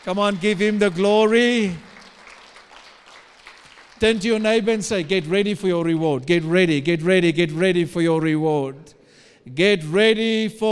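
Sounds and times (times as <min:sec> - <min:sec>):
speech: 0:00.0 - 0:01.9, 0:04.0 - 0:10.7
audience clapping: 0:00.0 - 0:06.1.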